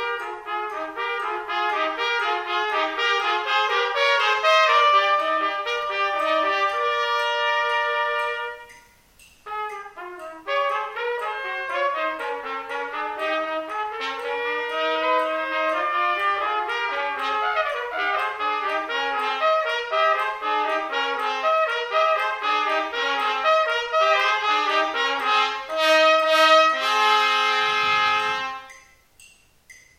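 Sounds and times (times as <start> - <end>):
trumpet duet: 0.0 - 29.2.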